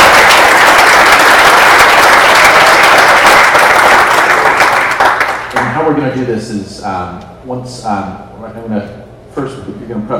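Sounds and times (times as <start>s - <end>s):
audience round of applause: 0.0s - 5.8s
speech: 6.4s - 10.1s.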